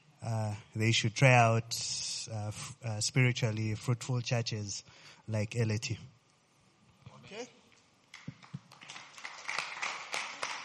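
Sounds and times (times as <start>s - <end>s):
speech: 0.3s - 6.2s
hand clapping: 8.1s - 10.6s.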